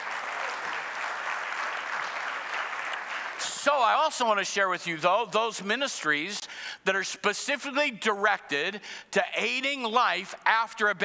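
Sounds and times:
applause: 0.0 - 4.1
speech: 3.6 - 11.0.

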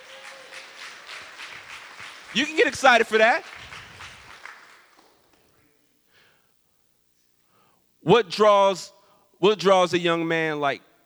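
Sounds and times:
audience clapping: 0.0 - 5.6
speech: 2.3 - 3.5, 8.1 - 10.9.

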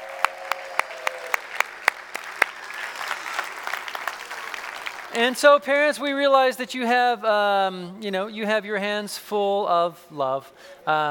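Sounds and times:
audience applauding the children: 0.0 - 5.4
speech: 5.2 - 11.0.

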